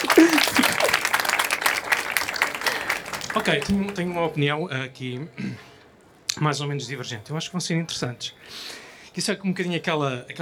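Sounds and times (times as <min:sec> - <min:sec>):
laughter: 0:00.0 - 0:04.2
audience applause: 0:00.0 - 0:04.4
speech: 0:03.4 - 0:05.7, 0:06.4 - 0:10.4.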